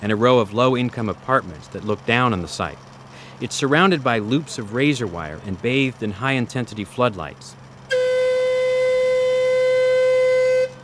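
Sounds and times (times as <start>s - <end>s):
speech: 0.0s - 7.6s
warning whistle blast before dynamite explosion: 7.9s - 10.8s.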